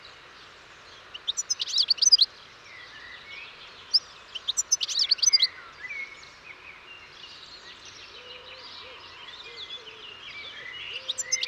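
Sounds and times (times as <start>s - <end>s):
European goldfinch Carduelis carduelis song: 0.8s - 8.1s, 9.7s - 11.4s.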